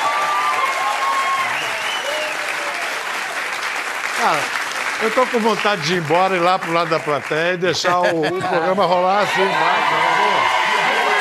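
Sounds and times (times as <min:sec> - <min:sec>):
faint whistles and cheers: 0:00.0 - 0:03.0, 0:09.3 - 0:11.1
audience applause: 0:00.0 - 0:11.1
speech: 0:04.2 - 0:10.6
laughter: 0:07.6 - 0:10.0.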